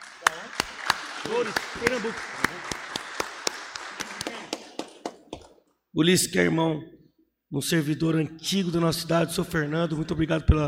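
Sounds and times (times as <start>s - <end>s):
crowd round of applause: 0.0s - 5.6s
speech: 1.2s - 2.6s, 6.0s - 10.6s.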